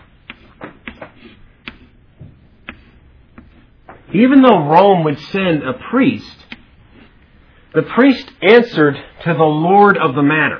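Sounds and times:
marker drawing a church on a board: 0:00.0 - 0:04.4, 0:06.2 - 0:07.4
speech: 0:04.1 - 0:06.4, 0:07.7 - 0:10.5.

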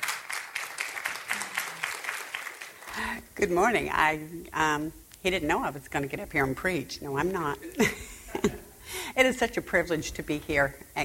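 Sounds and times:
audience applauding a speaker at Capital Baptist Church: 0:00.0 - 0:03.0
speech: 0:03.0 - 0:11.0.

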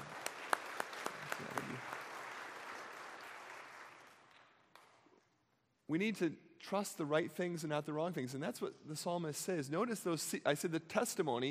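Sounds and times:
audience applause: 0:00.0 - 0:04.3
speech: 0:05.9 - 0:11.4.

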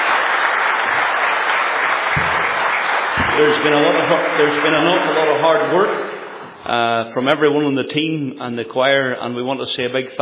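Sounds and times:
audience applause: 0:00.0 - 0:06.6
speech: 0:03.4 - 0:10.2.

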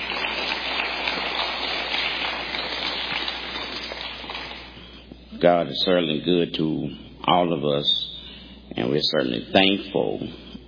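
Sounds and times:
audience clapping hands in praise: 0:00.0 - 0:04.9
speech: 0:05.4 - 0:08.1, 0:08.8 - 0:10.5.

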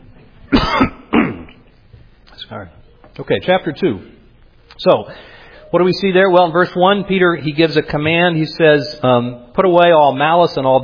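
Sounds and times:
person coughing after something went down the wrong pipe: 0:00.5 - 0:01.7
speech: 0:02.5 - 0:04.2, 0:04.8 - 0:10.8.

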